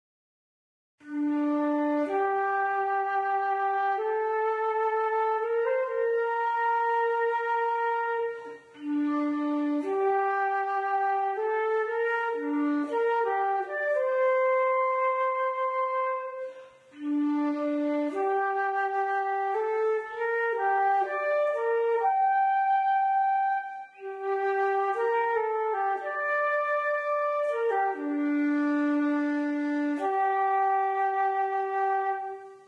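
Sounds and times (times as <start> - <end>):
flute: 1.0 - 32.6.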